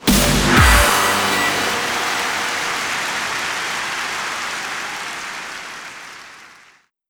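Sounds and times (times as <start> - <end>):
medium win jingle: 0.1 - 5.6.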